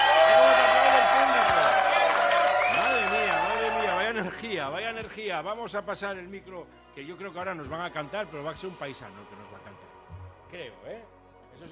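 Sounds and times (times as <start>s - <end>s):
crowd ovation at a concert in Moreda: 0.0s - 4.4s
speech: 4.4s - 9.8s, 10.5s - 11.7s.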